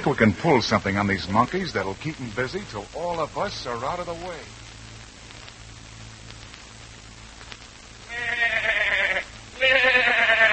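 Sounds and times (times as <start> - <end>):
speech: 0.0 - 4.6
goat bleating: 8.1 - 10.5.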